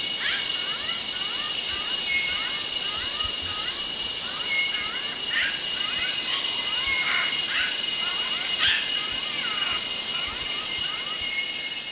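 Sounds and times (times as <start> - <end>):
Bornean bristlehead calling: 0.1 - 11.8.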